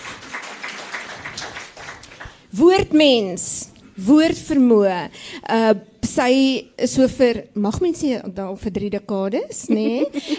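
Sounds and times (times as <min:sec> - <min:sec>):
audience hand clapping: 0:00.0 - 0:02.5
speech: 0:02.5 - 0:10.3.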